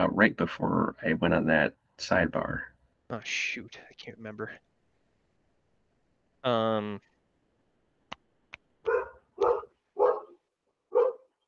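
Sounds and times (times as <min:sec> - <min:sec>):
speech: 0:00.1 - 0:04.7, 0:06.4 - 0:07.1
dog yelping: 0:08.8 - 0:11.3.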